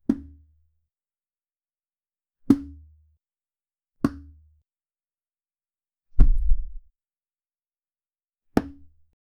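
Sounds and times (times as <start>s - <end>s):
object dropping on the floor: 6.2s - 6.8s.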